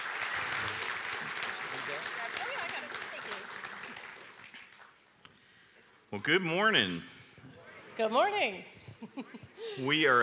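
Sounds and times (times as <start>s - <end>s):
congregation applauding guest speakers during a Sunday morning church service: 0.0s - 5.1s
speech: 6.2s - 7.2s, 8.0s - 10.2s.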